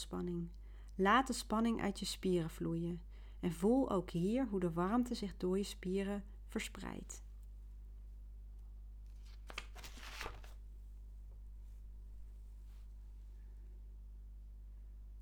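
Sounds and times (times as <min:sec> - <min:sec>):
speech: 0:00.0 - 0:07.2
quiet steady hum: 0:00.0 - 0:15.1
page of a paper script turning: 0:09.1 - 0:10.7.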